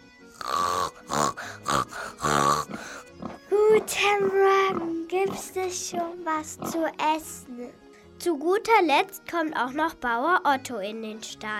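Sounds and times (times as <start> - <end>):
pig grunting: 0.4 - 7.0
speech: 5.2 - 11.5.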